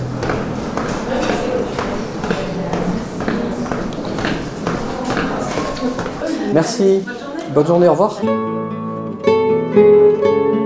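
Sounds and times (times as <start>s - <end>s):
footsteps descending the stairs of the Goulfard lighthouse: 0.0s - 7.6s
speech: 6.6s - 8.6s, 9.8s - 10.5s.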